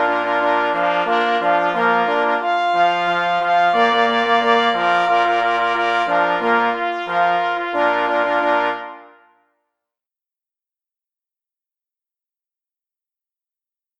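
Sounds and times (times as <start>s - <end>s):
pless and parforce hunting horns playing without bass solo: 0.0s - 9.4s.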